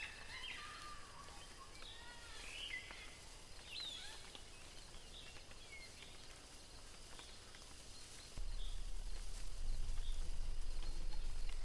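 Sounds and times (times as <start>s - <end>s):
birds singing and chirping in a jungle: 0.0s - 11.6s
soft steady hiss: 0.0s - 11.6s
low rumble: 8.4s - 11.6s.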